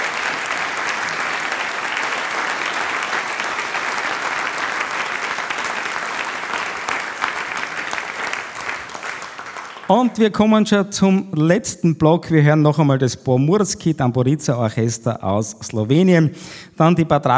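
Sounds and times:
audience applause: 0:00.0 - 0:10.2
speech: 0:09.9 - 0:17.3.

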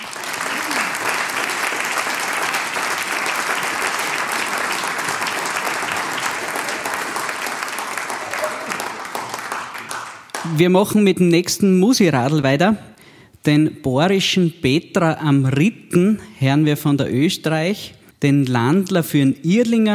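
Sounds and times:
audience applause: 0:00.0 - 0:10.6
speech: 0:10.6 - 0:19.9.

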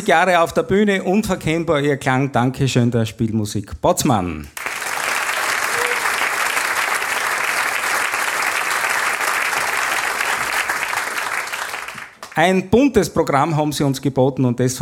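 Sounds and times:
speech: 0:00.0 - 0:04.6, 0:12.4 - 0:14.8
audience applause: 0:04.6 - 0:12.4.

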